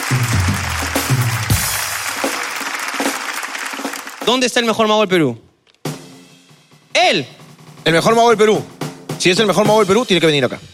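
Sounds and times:
audience applause: 0:00.0 - 0:04.6
speech: 0:04.3 - 0:05.4, 0:07.1 - 0:10.7.

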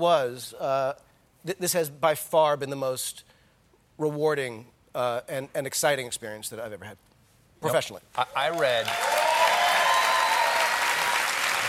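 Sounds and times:
speech: 0:00.0 - 0:03.3, 0:04.0 - 0:09.0
audience applause at a live on-stage interview: 0:08.4 - 0:11.6.

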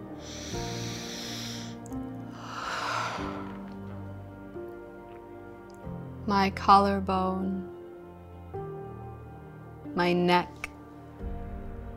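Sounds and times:
deep inhale during guided meditation: 0:00.0 - 0:03.8
soft sustained music tones: 0:00.0 - 0:11.9
speech: 0:06.3 - 0:07.7, 0:10.0 - 0:10.6.

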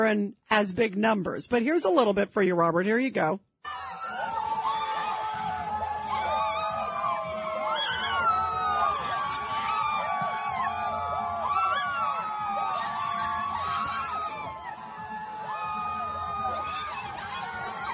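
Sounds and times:
speech: 0:00.0 - 0:03.8
protesters cheering outside: 0:03.6 - 0:17.9.

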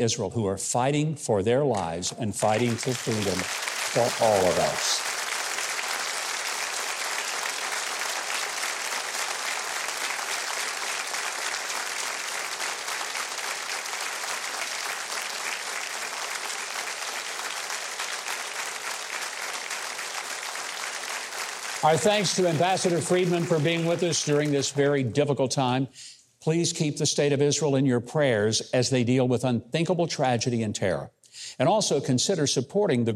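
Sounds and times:
speech: 0:00.0 - 0:05.1, 0:21.8 - 0:33.1
audience applause: 0:02.4 - 0:25.1.

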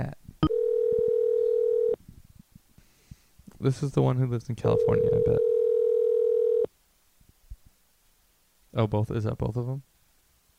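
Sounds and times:
telephone dial tone while placing a call: 0:00.4 - 0:02.0, 0:05.4 - 0:06.7
speech: 0:03.6 - 0:05.5, 0:08.8 - 0:09.9.

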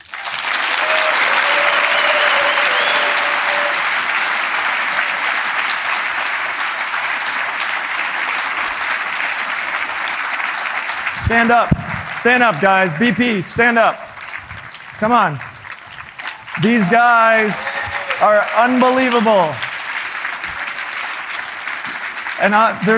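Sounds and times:
sustained applause from a large audience: 0:00.0 - 0:22.9
person whooping: 0:00.8 - 0:03.8, 0:16.6 - 0:18.6
speech: 0:11.3 - 0:14.1, 0:15.0 - 0:15.5, 0:16.6 - 0:19.6, 0:22.4 - 0:22.9.

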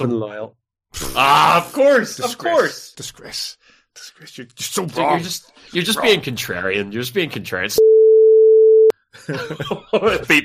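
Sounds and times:
speech: 0:00.0 - 0:07.9, 0:09.2 - 0:10.4
censor beep: 0:07.8 - 0:08.9
laughter: 0:09.1 - 0:10.4.

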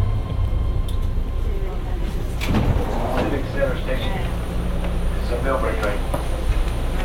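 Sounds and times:
BART train car interior roar and rattle in motion: 0:00.0 - 0:07.0
indistinct voices: 0:01.3 - 0:07.0.

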